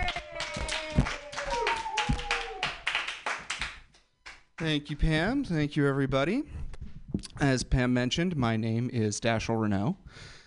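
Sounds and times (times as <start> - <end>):
audience clapping for a comedian at a happy-hour open mic: 0.0 - 4.8
speech: 4.6 - 6.6, 7.4 - 10.3.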